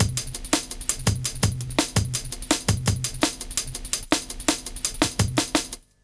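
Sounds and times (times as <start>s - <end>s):
jungle music loop: 0.0s - 5.8s.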